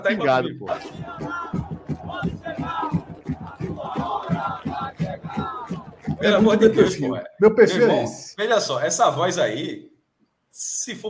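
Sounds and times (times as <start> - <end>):
speech: 0.0 - 1.4, 6.2 - 9.9, 10.6 - 11.0
football fans chanting in unison: 0.0 - 7.1.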